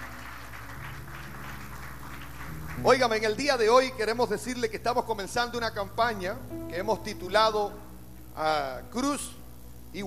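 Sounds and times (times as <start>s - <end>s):
congregation applause during a church service: 0.0s - 4.2s
speech: 2.8s - 7.8s, 8.4s - 10.0s.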